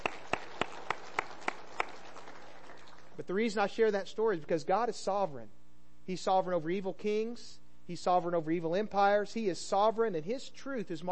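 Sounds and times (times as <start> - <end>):
audience clapping: 0.0 - 3.2
speech: 3.2 - 11.1.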